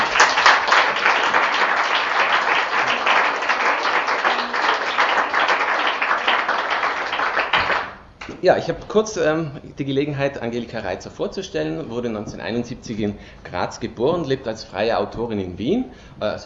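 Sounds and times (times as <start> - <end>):
audience applause at a literary reading in Saal 3: 0.0 - 8.1
speech: 8.4 - 16.4.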